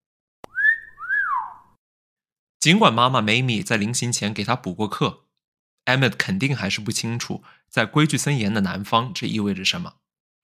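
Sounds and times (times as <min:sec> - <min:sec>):
single whistle: 0:00.4 - 0:01.8
speech: 0:02.6 - 0:05.2, 0:05.9 - 0:10.0.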